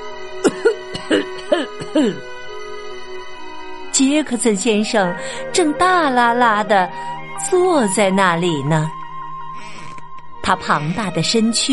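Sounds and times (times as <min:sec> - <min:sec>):
deep-voiced man coughing: 0:00.4 - 0:02.2
speech: 0:00.6 - 0:02.4, 0:04.0 - 0:09.0, 0:10.5 - 0:11.7.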